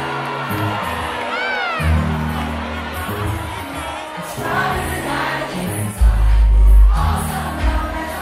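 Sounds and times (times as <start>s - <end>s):
party crowd cheering and whooping: 0.0s - 8.2s
high excited shouts: 0.4s - 3.9s
thumping music with heavy bass: 5.8s - 8.2s.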